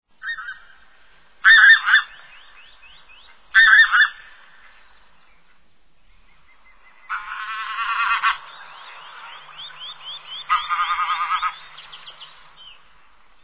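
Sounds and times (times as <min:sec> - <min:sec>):
bean goose honking: 0:01.4 - 0:02.1, 0:07.1 - 0:12.2.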